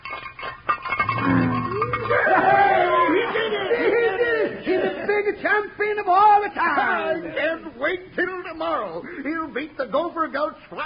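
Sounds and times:
frying pan rattling: 0.0s - 2.8s
laughter: 1.7s - 5.4s
speech: 5.4s - 10.8s.

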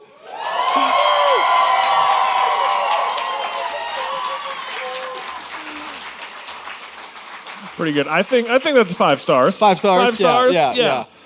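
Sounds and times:
live audience cheering and applauding: 0.0s - 10.5s
speech: 7.8s - 11.2s.

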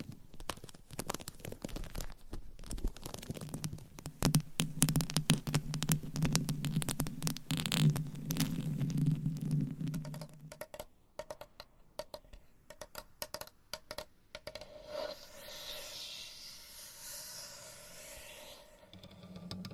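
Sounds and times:
gentle tapping and scratching: 0.0s - 14.8s
airy hiss: 14.6s - 18.9s.

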